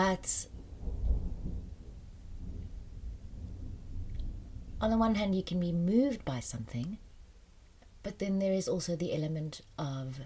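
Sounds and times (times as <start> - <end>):
speech: 0.0 - 0.5, 4.8 - 7.0, 8.0 - 10.2
thunder rumbling: 0.0 - 7.4.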